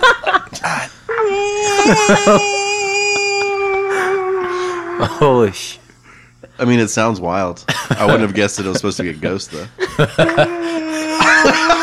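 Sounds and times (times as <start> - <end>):
laughter: 0.0 - 0.8, 1.6 - 4.1, 7.7 - 11.8
person yawning and stretching: 1.1 - 5.5, 10.4 - 11.8
speech: 1.9 - 2.6, 5.0 - 5.8, 6.6 - 10.6.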